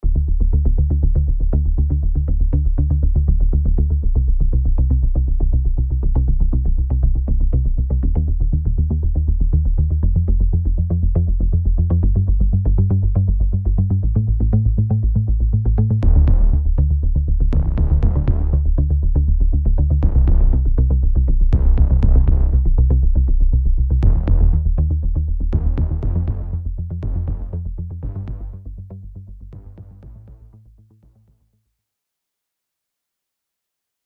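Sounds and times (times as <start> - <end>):
bass: 0.0 - 31.6.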